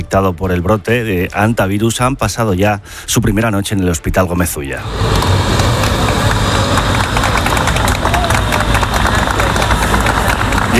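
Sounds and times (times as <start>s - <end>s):
street noise: 0.0s - 10.7s
speech: 0.1s - 5.6s
crowd clapping outdoors: 4.8s - 10.7s
chatter: 4.9s - 10.7s.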